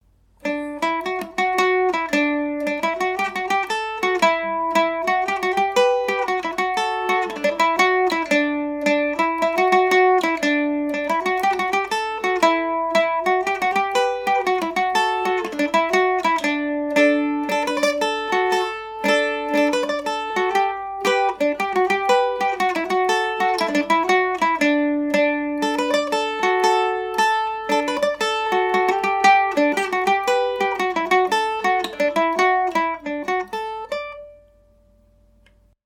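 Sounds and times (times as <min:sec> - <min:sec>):
Irish mandolin in D major: 0:00.2 - 0:35.8.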